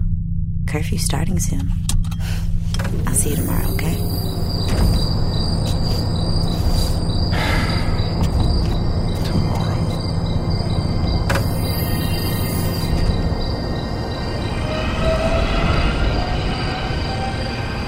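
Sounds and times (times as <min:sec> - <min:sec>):
low hum: 0:00.0 - 0:17.8
speech: 0:00.7 - 0:05.0
artificial chirping played over speakers: 0:03.1 - 0:07.3, 0:08.9 - 0:15.5.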